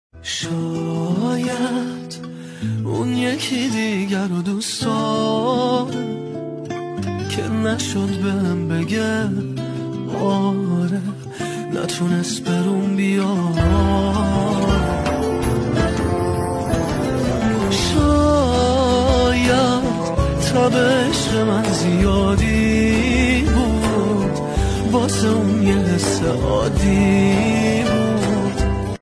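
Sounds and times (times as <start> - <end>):
guitar: 0.2 - 29.0.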